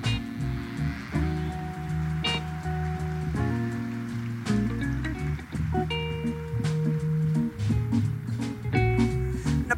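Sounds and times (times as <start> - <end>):
audience applause: 0.0 - 9.6.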